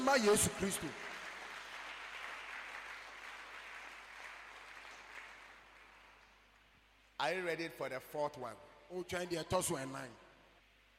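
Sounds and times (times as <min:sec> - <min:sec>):
speech: 0:00.0 - 0:01.1, 0:07.2 - 0:10.2
audience clapping: 0:00.0 - 0:07.1.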